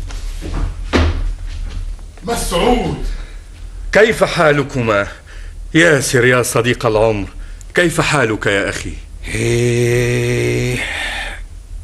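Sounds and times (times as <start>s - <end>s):
steady hiss: 0.0s - 11.8s
door being opened in a radio drama, dull thud: 0.6s - 1.3s
speech: 2.2s - 3.2s, 3.9s - 11.0s.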